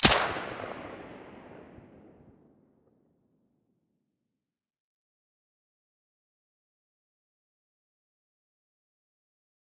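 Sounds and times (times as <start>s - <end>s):
silenced gunshot: 0.0s - 2.4s.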